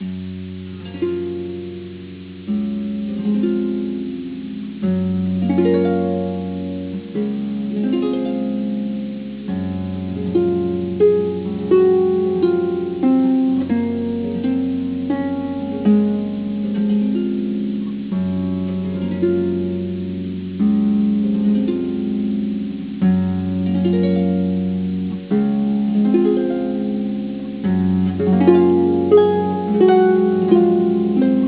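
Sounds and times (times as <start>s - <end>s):
harp: 0.0s - 31.4s.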